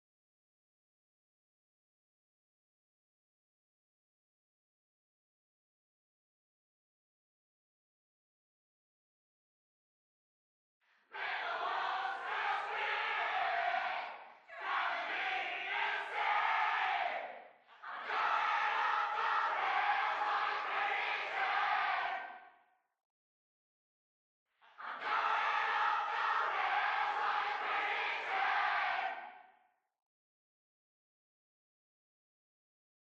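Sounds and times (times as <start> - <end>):
crowd: 10.9 - 22.7, 24.6 - 29.6.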